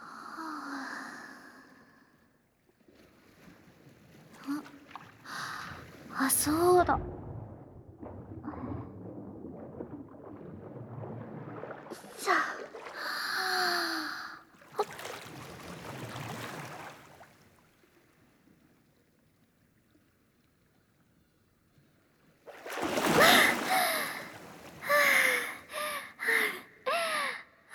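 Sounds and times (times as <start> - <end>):
person diving into the sea with a splash: 2.8 - 18.3, 22.5 - 26.0
speech: 6.3 - 7.2
breathy gasps on resurfacing from the sea: 12.3 - 14.5, 23.2 - 27.7.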